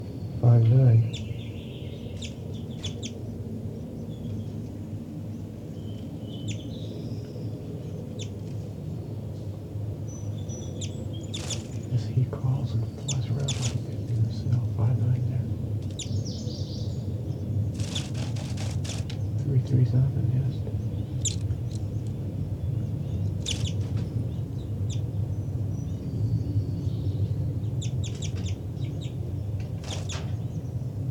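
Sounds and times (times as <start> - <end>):
steady low rumbling background: 0.0 - 31.0
bird calling in response: 0.9 - 3.3, 10.2 - 15.0, 15.8 - 17.1, 17.7 - 19.5, 20.6 - 22.2, 22.8 - 25.1, 27.8 - 30.6
speech: 19.9 - 20.7.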